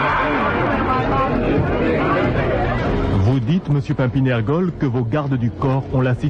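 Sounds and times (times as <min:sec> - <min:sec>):
crowd shouting and crying out: 0:00.0 - 0:03.1
speech: 0:03.4 - 0:06.2.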